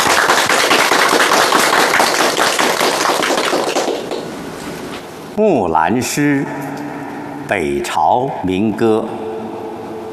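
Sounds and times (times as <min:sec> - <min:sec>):
audience applause: 0:00.0 - 0:04.3
speech: 0:05.4 - 0:06.8, 0:07.5 - 0:09.3.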